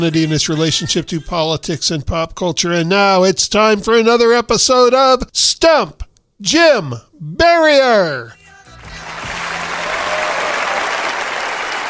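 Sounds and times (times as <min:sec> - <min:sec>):
speech: 0:00.0 - 0:08.4
recorded awards-show applause: 0:08.7 - 0:11.8.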